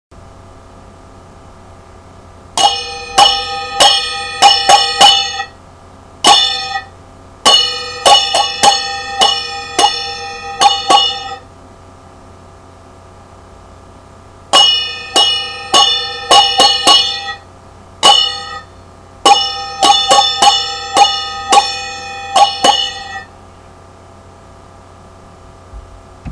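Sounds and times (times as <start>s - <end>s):
percussion: 2.6s - 5.6s, 6.2s - 11.4s, 14.5s - 17.4s, 18.0s - 23.3s.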